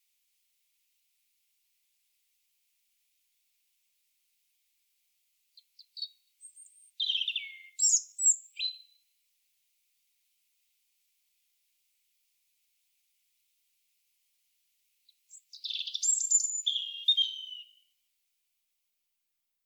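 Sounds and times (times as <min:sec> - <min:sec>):
European robin singing: 0:05.6 - 0:09.0, 0:15.1 - 0:17.9.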